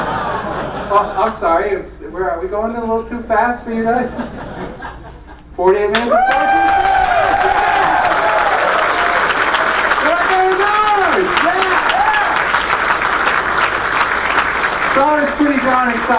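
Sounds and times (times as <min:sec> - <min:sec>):
laughter: 0:00.0 - 0:01.4, 0:04.0 - 0:05.5
speech: 0:00.9 - 0:04.5, 0:05.6 - 0:06.9, 0:15.0 - 0:16.1
audience applauding and cheering at the BrickFest 2005 fan convention: 0:06.0 - 0:16.1.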